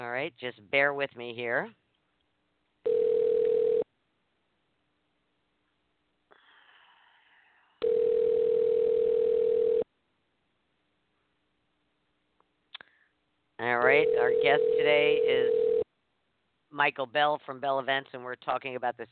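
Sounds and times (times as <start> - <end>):
speech: 0.2 - 1.8, 13.8 - 15.7, 16.7 - 19.1
telephone dial tone: 2.8 - 3.8, 7.8 - 9.8, 14.0 - 15.8.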